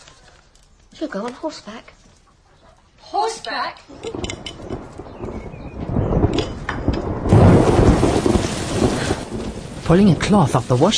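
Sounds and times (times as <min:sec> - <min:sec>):
speech: 0:01.0 - 0:02.0, 0:03.1 - 0:04.8, 0:09.9 - 0:10.9
heavy rain pouring: 0:03.9 - 0:10.9
low rumbles of thunder: 0:03.9 - 0:10.9.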